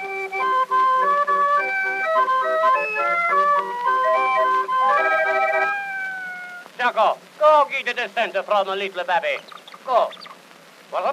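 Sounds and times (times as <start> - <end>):
hand organ playing a bright reedy melody: 0.0 - 6.7
speech: 7.8 - 10.3, 10.9 - 11.1.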